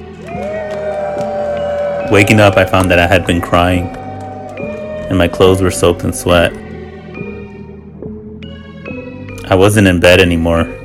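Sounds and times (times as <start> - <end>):
worshippers screaming in triumph: 0.0 - 6.4
speech: 2.1 - 4.0, 5.1 - 6.6, 9.5 - 10.8.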